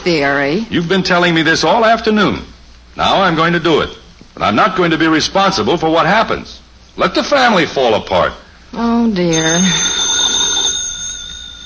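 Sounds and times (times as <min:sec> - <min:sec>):
speech: 0:00.0 - 0:10.0
telephone ringing: 0:09.3 - 0:11.6.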